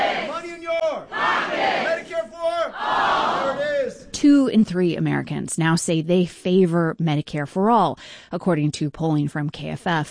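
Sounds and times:
crowd chanting a campaign slogan at a town hall: 0.0s - 4.0s
speech: 4.2s - 10.0s.

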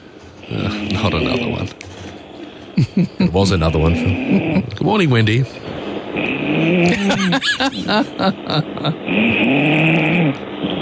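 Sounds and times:
speech: 0.5s - 1.8s, 2.8s - 5.7s, 6.6s - 10.4s
laughter: 2.8s - 4.8s, 6.8s - 9.1s
woman snoring: 4.0s - 4.7s, 6.4s - 10.3s.

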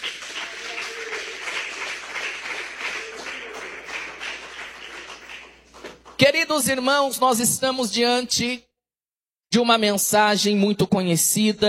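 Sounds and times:
audience clapping: 0.0s - 6.3s
speech: 6.2s - 8.7s, 9.5s - 11.6s.

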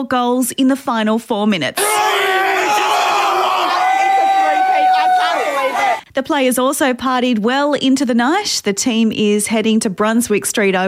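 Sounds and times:
speech: 0.0s - 2.9s, 6.2s - 10.8s
Lions fans roaring in Melbourne: 1.8s - 6.0s.

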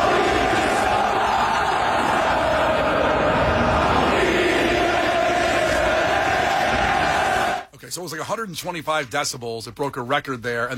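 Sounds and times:
huge stadium crowd of football fans singing loudly: 0.0s - 7.7s
speech: 7.9s - 10.7s.

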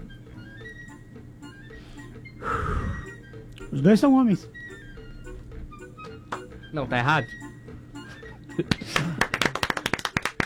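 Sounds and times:
speech: 3.8s - 4.6s, 6.7s - 7.5s, 8.6s - 9.1s
people laughing: 8.6s - 10.2s
sharp bright hand claps: 8.6s - 10.4s.

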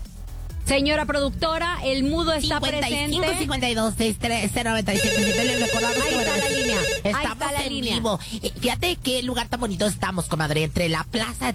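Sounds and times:
speech: 0.7s - 11.5s
telephone ringtone signalling an incoming call: 5.0s - 7.2s.

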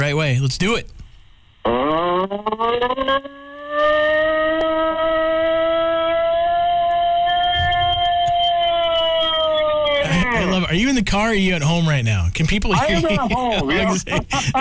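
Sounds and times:
speech: 0.1s - 1.0s, 1.6s - 5.1s, 10.1s - 14.6s
person imitating a Bigfoot call howl: 4.6s - 10.6s
laughter: 7.6s - 8.6s, 10.0s - 10.7s, 12.4s - 14.6s.

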